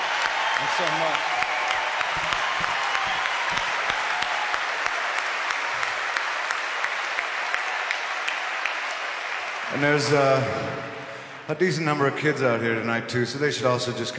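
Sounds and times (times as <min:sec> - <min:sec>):
audience applause: 0:00.0 - 0:11.0
speech: 0:00.6 - 0:01.4, 0:02.1 - 0:02.4, 0:09.7 - 0:14.1.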